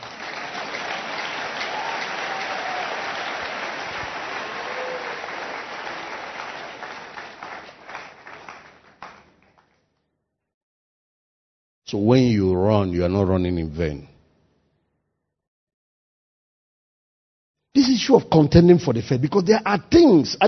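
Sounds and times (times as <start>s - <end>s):
crowd applauding: 0.0s - 9.8s
speech: 11.9s - 14.1s, 18.1s - 20.4s.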